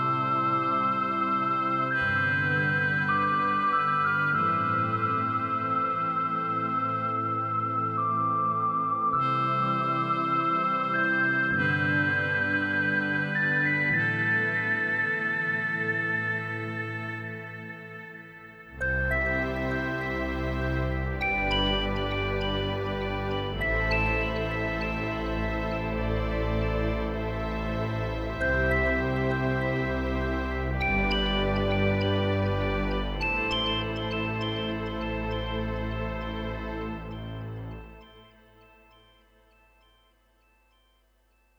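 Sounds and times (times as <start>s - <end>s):
flutey tone: 0.0s - 38.4s.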